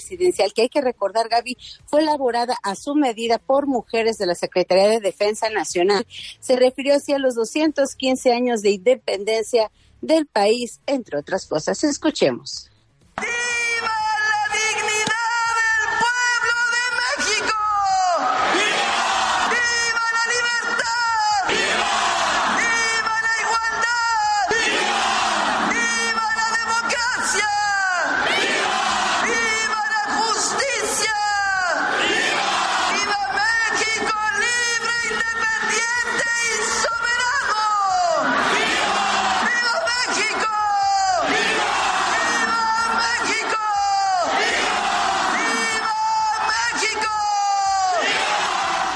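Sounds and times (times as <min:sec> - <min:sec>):
speech: 0:00.0 - 0:14.0
large crowd shouting and cheering in a city square: 0:13.2 - 0:48.9.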